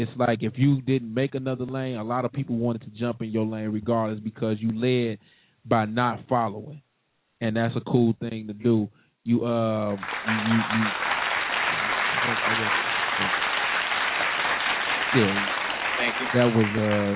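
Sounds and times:
speech: 0.0 - 6.8, 7.4 - 11.1, 12.2 - 13.4, 15.1 - 17.1
audience applause: 9.9 - 17.1.

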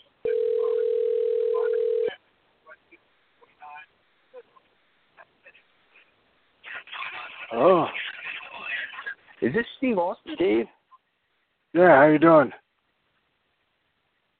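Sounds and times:
telephone ring tone on outgoing call over a phone line: 0.2 - 2.1
speech: 9.5 - 10.8, 11.7 - 12.6.

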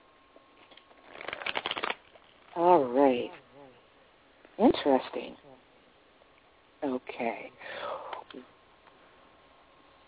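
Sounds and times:
cards being shuffled and pulled from the deck for a reading: 0.6 - 2.5
speech: 2.6 - 3.4, 4.6 - 5.4, 6.8 - 7.6, 8.3 - 8.5.

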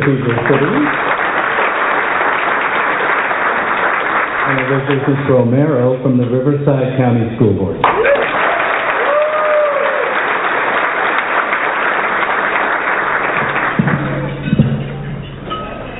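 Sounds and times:
speech: 0.0 - 1.1, 4.5 - 8.1
audience round of applause in memory of Harvey Milk: 0.0 - 5.4, 7.8 - 14.4.

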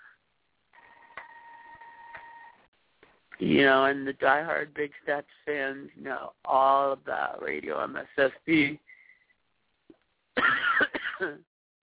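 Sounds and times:
speech: 3.4 - 8.9, 11.2 - 11.5
person coughing from a cold: 10.4 - 11.4.

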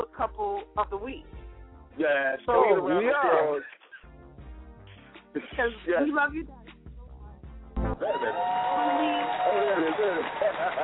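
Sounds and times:
speech: 0.2 - 1.4, 2.0 - 3.8, 5.3 - 6.6, 8.0 - 10.8
laughter: 3.3 - 4.1, 8.2 - 10.8
audience applause: 8.0 - 10.8.

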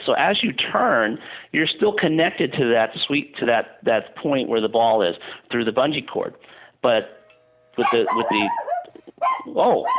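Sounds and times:
speech: 0.0 - 7.2, 7.8 - 8.6, 9.3 - 9.9
pet dog barking and yipping: 7.8 - 9.9.

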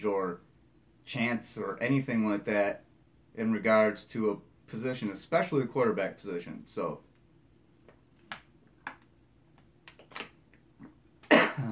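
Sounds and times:
speech: 0.0 - 0.5, 1.1 - 2.8, 3.4 - 7.1
person coughing after a drink went down the wrong pipe: 11.3 - 11.7.

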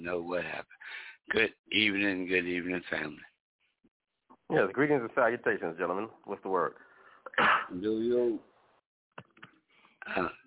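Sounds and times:
speech: 0.0 - 3.3, 4.5 - 8.5, 10.1 - 10.4
person coughing: 7.3 - 7.8.

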